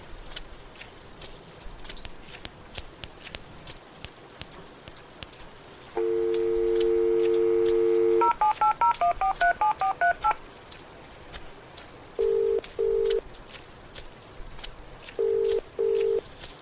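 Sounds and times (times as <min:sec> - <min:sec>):
faint noise: 0:00.0 - 0:16.6
telephone dial tone: 0:06.0 - 0:10.4, 0:12.2 - 0:13.2, 0:15.2 - 0:16.2.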